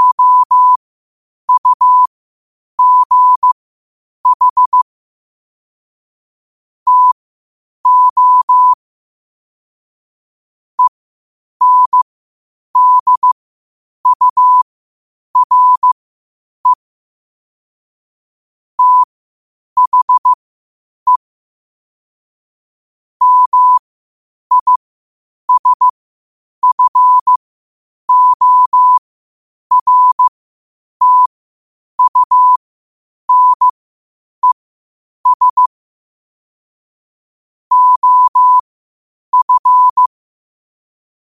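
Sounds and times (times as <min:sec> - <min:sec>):
morse code at 5 wpm: 0:00.0 - 0:00.8, 0:01.5 - 0:02.1, 0:02.8 - 0:03.6, 0:04.2 - 0:04.8, 0:06.9 - 0:07.2, 0:07.9 - 0:08.8, 0:11.6 - 0:12.0, 0:12.8 - 0:13.4, 0:14.0 - 0:14.6, 0:15.4 - 0:16.0, 0:18.8 - 0:19.1, 0:19.8 - 0:20.4, 0:23.2 - 0:23.8, 0:24.5 - 0:24.8, 0:25.5 - 0:25.9, 0:26.6 - 0:27.4, 0:28.1 - 0:29.0, 0:29.7 - 0:30.3, 0:31.0 - 0:31.3, 0:32.0 - 0:32.6, 0:33.3 - 0:33.7, 0:35.2 - 0:35.7, 0:37.7 - 0:38.6, 0:39.3 - 0:40.2.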